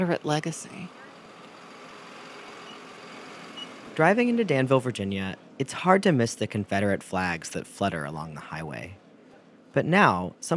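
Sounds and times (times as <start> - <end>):
speech: 0.0 - 1.0, 4.0 - 9.0, 9.8 - 10.5
trolley engine idling in Danville, Virginia: 0.0 - 5.3.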